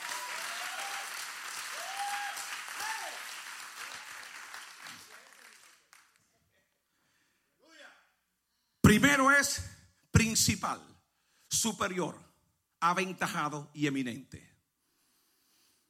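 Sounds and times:
people cheering: 0.0 - 5.9
crowd clapping: 0.0 - 6.3
speech: 9.0 - 9.7, 10.4 - 10.9, 11.5 - 14.5.

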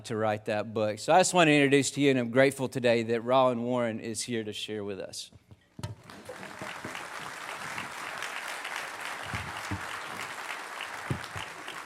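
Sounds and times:
speech: 0.0 - 5.9
audience applause: 6.0 - 11.8.

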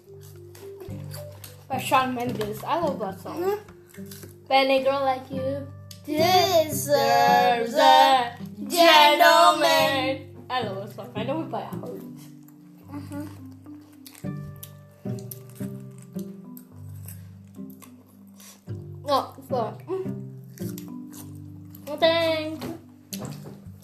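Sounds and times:
crunching lettuce for ASMR: 0.1 - 1.7, 3.9 - 4.4, 13.3 - 18.6, 20.5 - 21.9
speech: 1.7 - 11.9.

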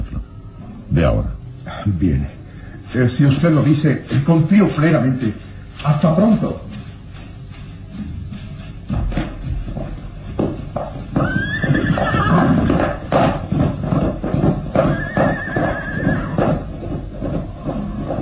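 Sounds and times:
speech: 1.0 - 6.8
peasant's horse galloping off into the mist: 2.8 - 18.1
horse whinnying: 11.2 - 13.1, 14.7 - 16.8.

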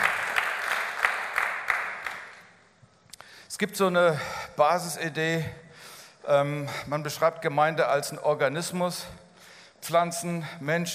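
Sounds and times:
audience applause: 0.0 - 2.4
speech: 3.6 - 5.6, 6.2 - 9.2, 9.8 - 10.9.

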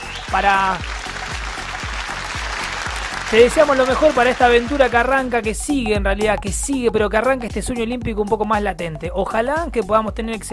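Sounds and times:
applause: 0.0 - 5.4
speech: 0.3 - 0.9, 3.3 - 10.5.

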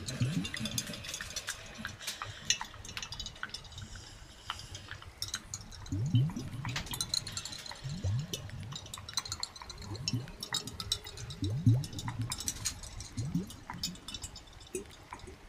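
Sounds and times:
bubbles rising and popping in water: 0.0 - 1.2, 5.6 - 15.4
bright clicks and fizzing crackle: 0.0 - 15.4
low gurgling: 0.0 - 15.4.

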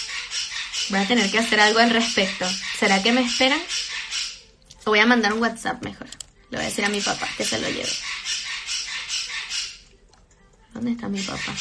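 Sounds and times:
pet parrot squawking: 0.0 - 4.5, 6.6 - 9.9, 11.0 - 11.6
speech: 0.9 - 3.9, 4.8 - 8.1, 10.8 - 11.6.

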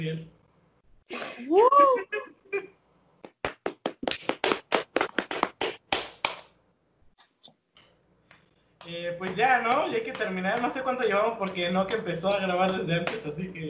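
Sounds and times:
speech: 0.0 - 0.4, 1.1 - 2.7, 8.9 - 13.6
person whooping: 1.3 - 2.3
sharp evenly spaced claps: 3.2 - 6.6, 8.8 - 13.5.

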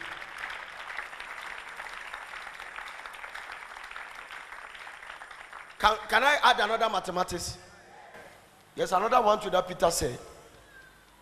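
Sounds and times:
audience applause: 0.0 - 5.8
speech: 5.8 - 7.6, 8.8 - 10.3.

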